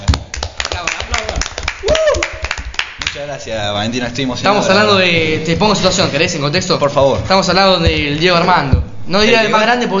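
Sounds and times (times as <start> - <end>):
audience applause: 0.3 - 3.2
speech: 3.2 - 9.9.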